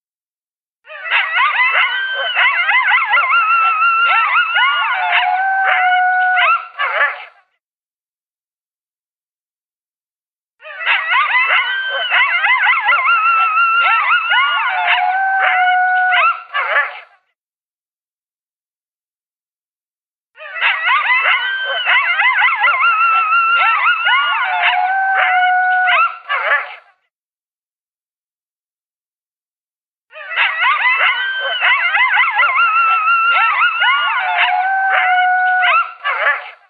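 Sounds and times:
coyote howling and yipping: 0.9 - 7.3, 10.6 - 17.1, 20.4 - 26.8, 30.1 - 36.6.

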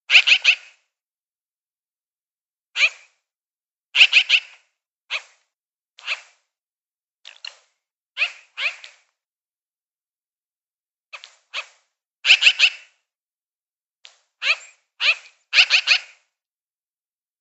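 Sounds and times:
magpie giving dry rasping calls: 0.1 - 0.8, 2.8 - 3.1, 4.0 - 5.4, 8.2 - 8.9, 11.5 - 13.0, 14.4 - 16.2.

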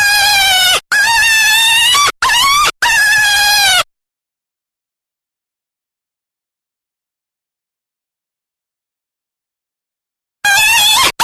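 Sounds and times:
Jackrabbit piercing harmonic distress screams: 0.0 - 3.9, 10.4 - 11.2.

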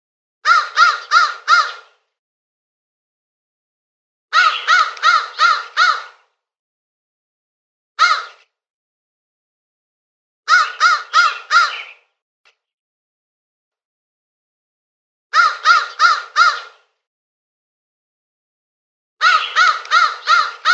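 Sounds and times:
crow cawing with harsh rasping notes: 0.4 - 2.0, 4.3 - 6.3, 8.0 - 8.4, 10.5 - 12.0, 15.3 - 16.9, 19.2 - 20.7.

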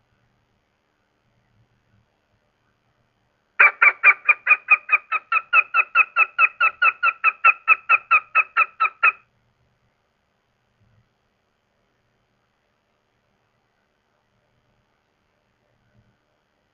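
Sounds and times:
goshawk calling: 3.6 - 9.2.

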